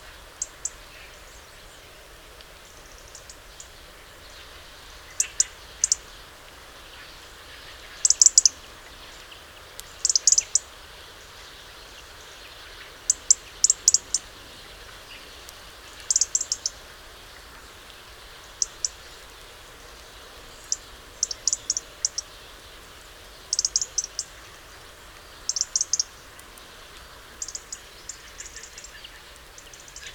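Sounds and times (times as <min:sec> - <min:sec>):
hiss: 0:00.0 - 0:30.1
European robin ticking calls: 0:00.4 - 0:01.2, 0:02.8 - 0:03.8, 0:05.1 - 0:06.2, 0:08.0 - 0:10.7, 0:13.1 - 0:14.3, 0:15.1 - 0:17.7, 0:18.5 - 0:19.6, 0:20.5 - 0:22.4, 0:23.2 - 0:30.1.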